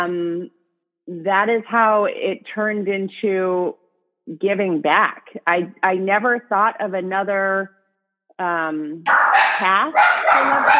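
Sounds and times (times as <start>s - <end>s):
speech: 0.0s - 7.8s, 8.4s - 10.7s
dogs barking at someone at the front door: 9.1s - 10.7s.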